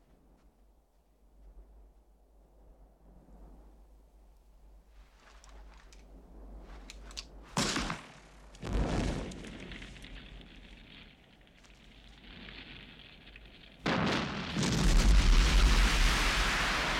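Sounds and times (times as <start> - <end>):
explosion blowing up a plane: 7.6 - 16.9.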